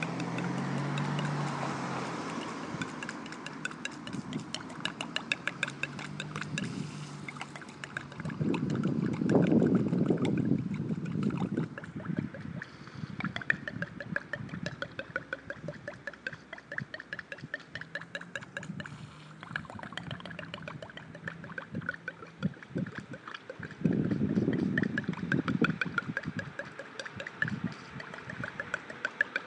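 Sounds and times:
leaking pipe: 0:00.0 - 0:29.4.

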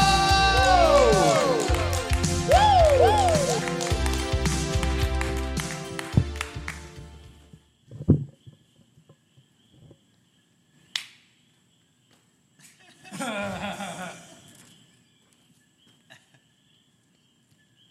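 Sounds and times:
audience applause: 0:00.0 - 0:07.2
laughter: 0:12.6 - 0:14.5.

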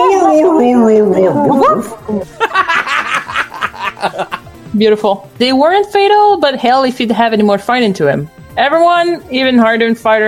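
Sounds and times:
voice imitating dog howling: 0:00.0 - 0:02.2
speech: 0:01.3 - 0:02.4, 0:04.1 - 0:10.2
breathy laughter: 0:02.1 - 0:04.5.

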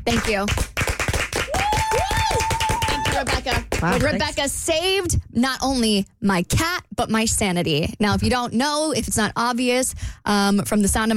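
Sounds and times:
speech: 0:00.0 - 0:00.7, 0:03.1 - 0:11.1
group clapping as a tribute: 0:00.1 - 0:04.3.

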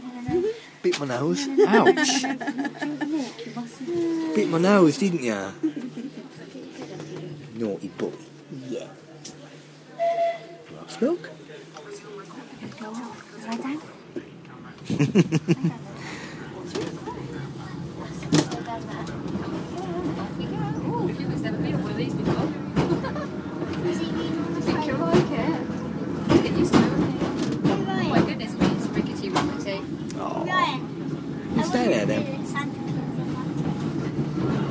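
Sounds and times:
speech: 0:00.8 - 0:06.3, 0:07.6 - 0:09.0, 0:10.9 - 0:11.4, 0:12.8 - 0:13.9, 0:14.9 - 0:15.8
laughter: 0:01.6 - 0:03.4, 0:05.6 - 0:06.4, 0:14.8 - 0:16.2, 0:22.8 - 0:23.7
rickety train rolling along: 0:14.0 - 0:34.7.

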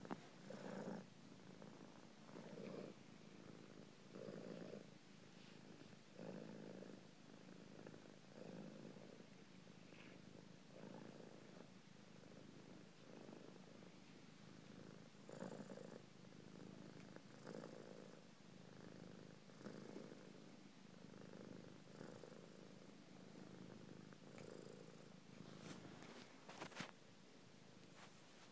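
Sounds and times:
cat purring: 0:00.0 - 0:27.0.

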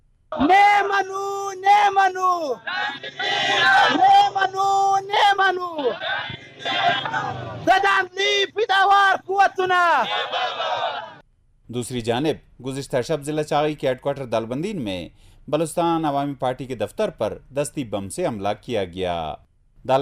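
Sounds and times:
speech: 0:00.3 - 0:11.1, 0:11.7 - 0:20.0
protesters chanting slogans at a street rally in Qila Abdullah, Pakistan: 0:02.6 - 0:08.5, 0:09.9 - 0:11.2.

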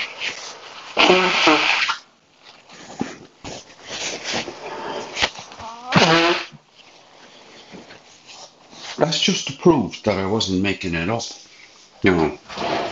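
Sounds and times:
nose blowing: 0:00.9 - 0:02.0, 0:04.6 - 0:06.6
speech: 0:01.0 - 0:01.8, 0:09.3 - 0:11.4, 0:12.0 - 0:12.7.

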